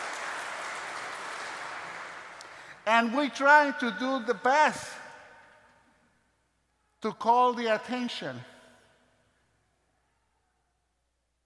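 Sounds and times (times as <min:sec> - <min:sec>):
audience applause: 0:00.0 - 0:02.7
speech: 0:02.9 - 0:05.0, 0:07.0 - 0:08.5.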